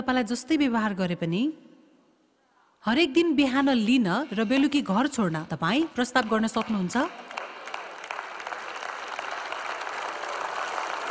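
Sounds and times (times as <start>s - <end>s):
speech: 0.0s - 1.6s, 2.8s - 7.3s
audience applause: 6.6s - 11.0s.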